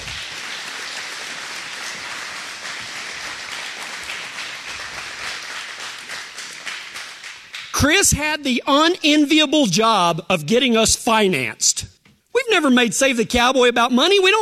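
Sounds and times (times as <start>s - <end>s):
sustained crowd applause: 0.0s - 8.0s
speech: 7.8s - 11.9s, 12.5s - 14.3s.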